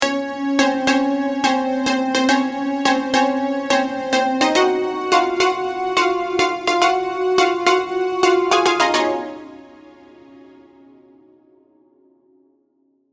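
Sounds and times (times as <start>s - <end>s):
Serum synthesizer sounds: 0.0s - 9.8s.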